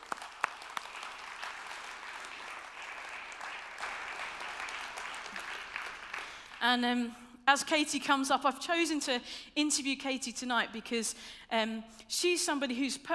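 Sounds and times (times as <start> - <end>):
soft audience applause welcoming a speaker: 0.0 - 6.6
speech: 6.6 - 13.1.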